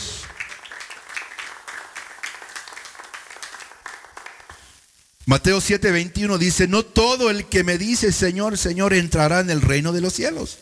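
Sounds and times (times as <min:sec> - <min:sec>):
crowd clapping: 0:00.0 - 0:04.8
speech: 0:05.3 - 0:10.6.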